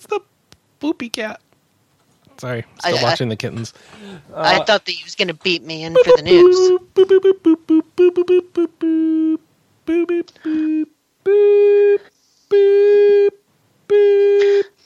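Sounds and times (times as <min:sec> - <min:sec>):
speech: 0:00.0 - 0:01.5, 0:02.4 - 0:11.8
voice imitating Morse-code-like electronic beeps: 0:05.9 - 0:14.7.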